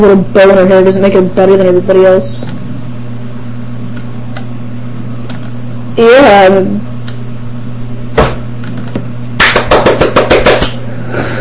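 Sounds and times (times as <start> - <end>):
speech: 0.0 - 2.6, 6.0 - 6.9
hand clapping: 9.4 - 10.8.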